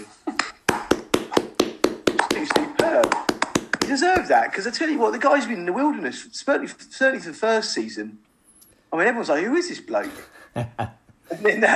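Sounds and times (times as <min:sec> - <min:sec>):
round of applause hand claps: 0:00.4 - 0:04.4
speech: 0:03.9 - 0:08.3, 0:08.9 - 0:11.7.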